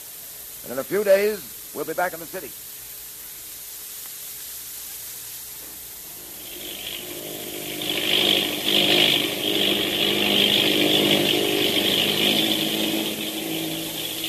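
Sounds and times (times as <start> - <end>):
speech: 0.6 - 2.8
propeller-plane engine droning: 5.6 - 14.2.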